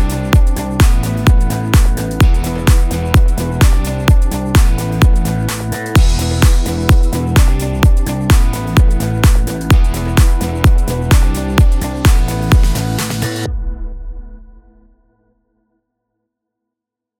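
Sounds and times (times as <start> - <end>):
rock EDM music bed in E minor: 0.0 - 13.5.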